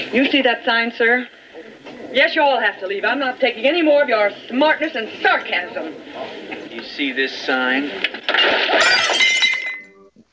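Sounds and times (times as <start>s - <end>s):
speech: 0.1s - 1.4s, 2.1s - 9.3s
dishes swept off a table crashing and shattering: 8.0s - 10.1s.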